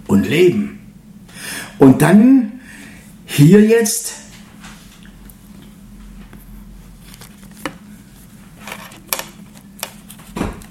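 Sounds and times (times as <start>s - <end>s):
speech: 0.1s - 0.8s, 1.4s - 2.5s, 3.3s - 4.3s
book pages turning: 6.2s - 10.6s.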